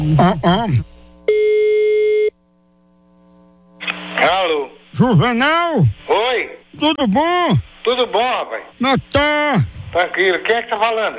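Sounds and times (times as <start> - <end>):
speech: 0.0 - 1.4, 4.2 - 11.1
telephone ringing tone during a prank call: 1.3 - 2.4.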